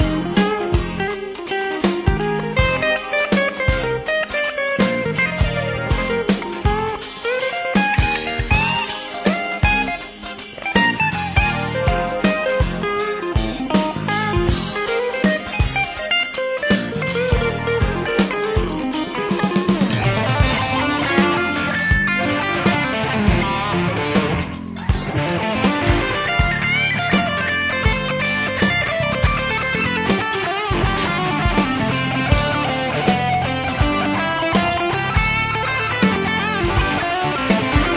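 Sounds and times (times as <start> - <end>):
jazz rock fusion on a PRS Cu22 guitar: 0.0 - 37.9.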